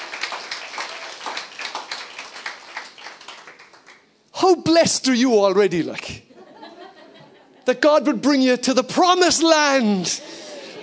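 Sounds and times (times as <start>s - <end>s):
audience applause: 0.0s - 4.0s
speech: 4.4s - 6.3s, 7.7s - 10.4s
laughter: 6.3s - 7.7s.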